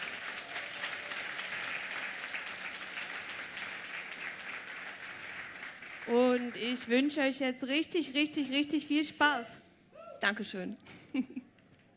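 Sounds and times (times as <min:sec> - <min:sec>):
audience applause: 0:00.0 - 0:06.5
speech: 0:06.1 - 0:09.6, 0:10.2 - 0:11.4.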